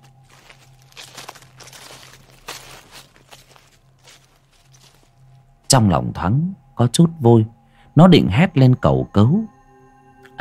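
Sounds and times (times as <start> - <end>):
footsteps crunching on dry grass: 0.0 - 6.0
speech: 5.7 - 9.6.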